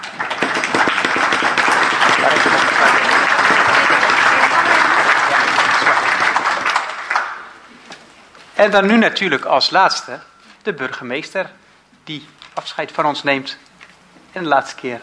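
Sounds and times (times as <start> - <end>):
clapping: 0.0 - 7.5
speech: 8.6 - 13.7, 14.3 - 15.0.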